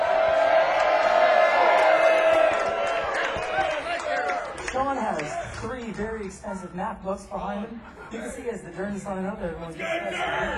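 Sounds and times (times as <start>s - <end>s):
audience applause and cheering: 0.0s - 5.9s
speech: 6.3s - 10.5s.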